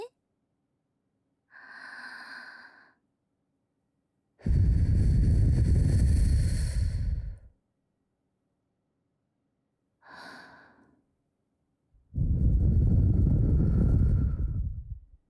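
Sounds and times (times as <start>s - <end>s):
blowing into the right ear: 4.5s - 7.4s, 12.2s - 14.9s.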